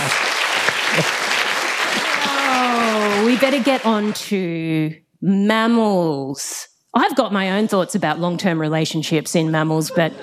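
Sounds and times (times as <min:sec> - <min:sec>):
audience round of applause: 0:00.0 - 0:04.2
speech: 0:01.0 - 0:01.2, 0:03.4 - 0:10.2.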